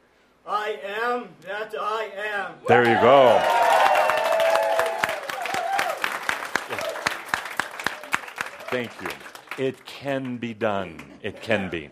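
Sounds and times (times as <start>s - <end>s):
speech: 0.5s - 3.6s, 8.7s - 11.9s
crowd screaming and cheering: 2.8s - 6.1s
scattered claps: 4.3s - 11.2s.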